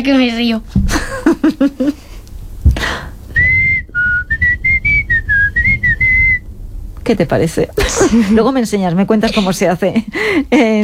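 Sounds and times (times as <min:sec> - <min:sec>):
speech: 0:00.0 - 0:02.0, 0:07.1 - 0:10.8
person whistling different tones: 0:03.3 - 0:06.5.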